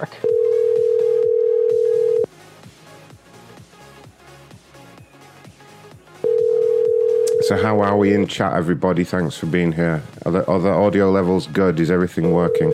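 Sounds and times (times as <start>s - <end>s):
speech: 0.0s - 0.3s, 7.5s - 12.7s
rhythmic music: 0.0s - 12.7s
ringing tone of an unanswered phone call: 0.1s - 2.3s, 6.2s - 7.7s, 12.3s - 12.7s.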